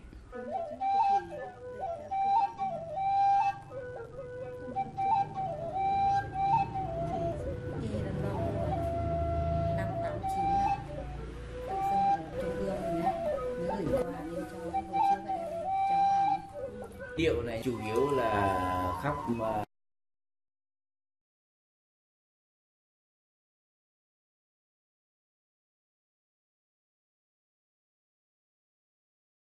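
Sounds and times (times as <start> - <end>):
Thai pí reed pipe playing: 0.3 - 19.7
speech: 0.4 - 1.7, 19.0 - 19.6.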